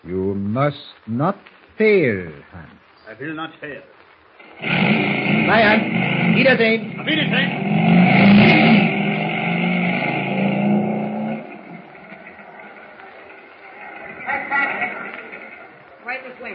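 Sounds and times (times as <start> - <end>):
speech: 0.0 - 4.0, 4.6 - 8.7
motorcycle engine starting and driving off: 4.4 - 16.5.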